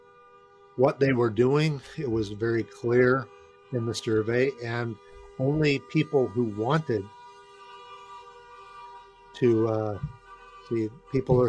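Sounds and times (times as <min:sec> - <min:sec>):
siren: 0:00.0 - 0:11.4
speech: 0:00.8 - 0:07.2, 0:09.4 - 0:11.4.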